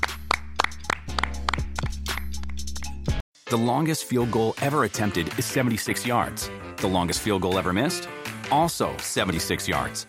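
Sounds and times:
hand clapping: 0.0s - 2.8s
speech: 3.5s - 10.0s.

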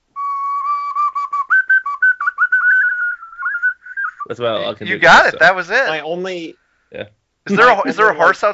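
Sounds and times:
ocarina melody from a video game: 0.2s - 4.4s
speech: 4.3s - 8.5s.

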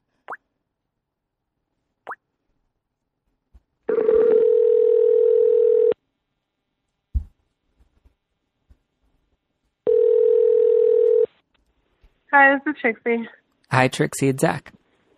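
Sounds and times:
telephone ringing tone: 3.9s - 6.0s, 9.9s - 11.3s
dull thump: 7.1s - 7.4s
speech: 12.5s - 14.8s.

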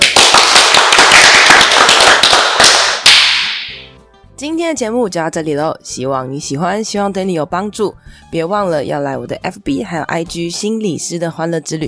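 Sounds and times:
applause: 0.0s - 3.7s
speech: 4.7s - 11.8s.

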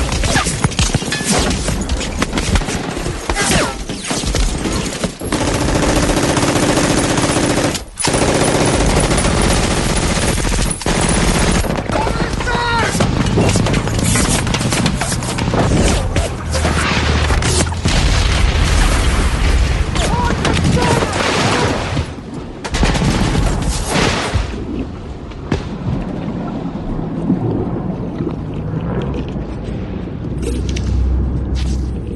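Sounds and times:
low churning rumble of boats and surf: 0.0s - 32.1s
war film machine-gun fire: 5.3s - 12.1s
war film beach landing explosions: 11.6s - 24.8s.

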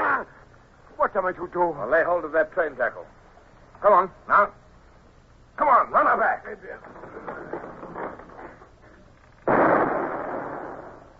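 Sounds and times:
low rumbling noise: 0.0s - 11.1s
speech: 1.0s - 3.2s, 3.8s - 4.6s, 5.6s - 7.5s
ship's cannon shot: 9.4s - 11.1s.

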